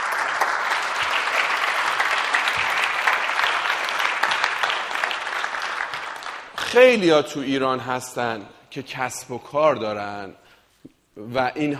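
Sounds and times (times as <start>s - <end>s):
audience applauding at a business talk: 0.0s - 6.8s
speech: 6.8s - 10.4s, 11.2s - 11.7s.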